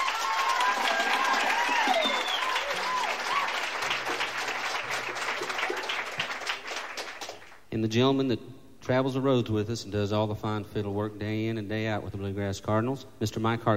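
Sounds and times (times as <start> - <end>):
high whistles and cheers: 0.0 - 3.9
audience applause welcoming a musician at a bluegrass show: 0.0 - 7.6
speech: 7.8 - 13.7.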